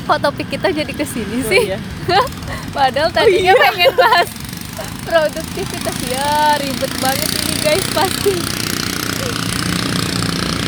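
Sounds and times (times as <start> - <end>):
ketinting motorboat engine on the Mahakam River: 0.0 - 10.6
speech: 0.1 - 9.8
laughter: 1.3 - 9.7.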